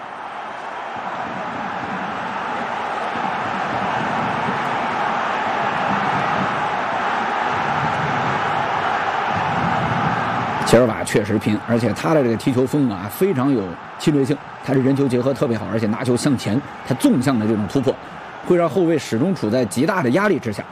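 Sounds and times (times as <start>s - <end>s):
home football fans booing in stadium: 0.0s - 20.6s
speech: 10.7s - 20.6s.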